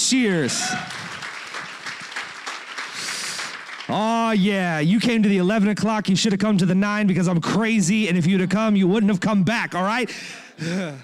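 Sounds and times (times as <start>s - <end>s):
crowd clapping and applauding: 0.0s - 5.1s
speech: 0.1s - 1.2s, 3.9s - 11.0s.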